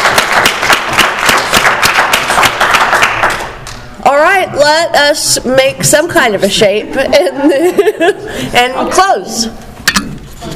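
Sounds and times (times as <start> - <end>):
audience applause: 0.0 - 3.7
speech: 4.7 - 9.7
laughter: 7.0 - 8.7.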